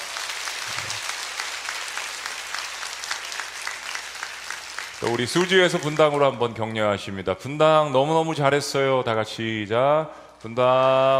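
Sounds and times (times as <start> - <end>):
crowd clapping: 0.0 - 6.4
speech: 5.0 - 11.1.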